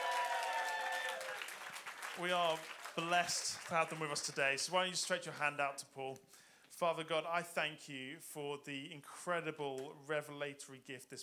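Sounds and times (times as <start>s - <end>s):
audience applause: 0.0s - 4.5s
speech: 2.2s - 11.2s.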